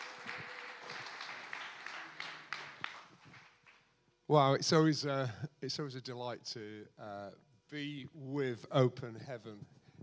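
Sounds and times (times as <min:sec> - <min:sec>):
audience round of applause: 0:00.0 - 0:03.7
speech: 0:04.3 - 0:09.8.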